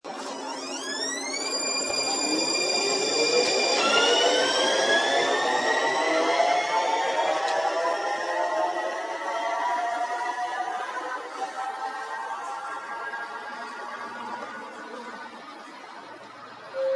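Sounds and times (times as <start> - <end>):
electric train: 0.1 - 16.9.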